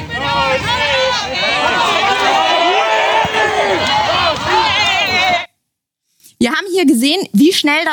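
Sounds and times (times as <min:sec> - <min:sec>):
crowd shouting aggressively: 0:00.0 - 0:05.5
speech: 0:06.4 - 0:07.9.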